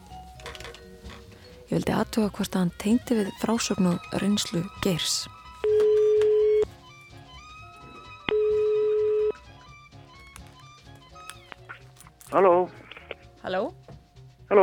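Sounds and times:
speech: 1.7s - 5.4s, 12.3s - 12.7s, 13.5s - 13.8s
telephone ringback tones on an outgoing call: 3.5s - 6.7s, 7.3s - 9.8s.

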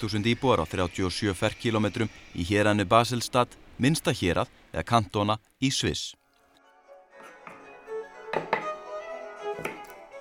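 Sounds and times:
speech: 0.0s - 6.2s, 8.4s - 8.6s
knife chopping onion on a board in a kitchen: 9.6s - 10.0s.

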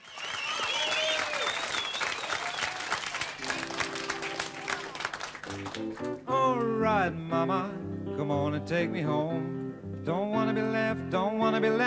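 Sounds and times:
cheers and whistles: 0.0s - 5.0s
large audience of students clapping: 0.0s - 6.7s
speech: 6.8s - 11.8s.

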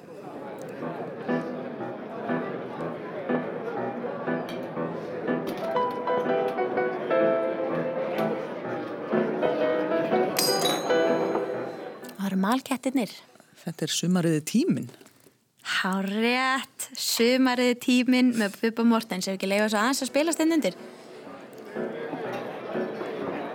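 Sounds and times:
murmur of restaurant diners: 0.0s - 12.4s, 20.1s - 23.5s
piano playing gentle melody in a fine restaurant: 0.7s - 12.1s, 20.8s - 23.5s
bright chime of glass: 10.4s - 11.7s
glasses and cutlery clinking: 10.4s - 11.7s
speech: 12.5s - 15.0s, 15.8s - 20.9s.

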